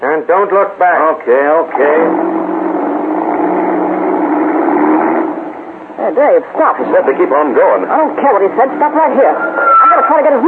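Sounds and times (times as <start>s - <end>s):
speech: 0.2s - 2.6s, 6.1s - 10.4s
car engine starting: 1.5s - 9.4s.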